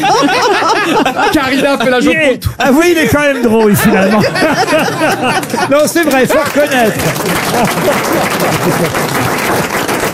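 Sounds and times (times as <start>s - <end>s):
laughter: 0.0s - 10.0s
speech: 1.3s - 9.9s
audience clapping: 4.4s - 10.1s.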